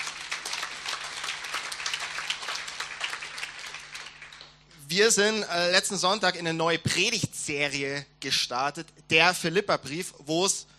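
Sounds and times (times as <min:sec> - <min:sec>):
crowd applauding: 0:00.0 - 0:04.6
speech: 0:04.9 - 0:10.7.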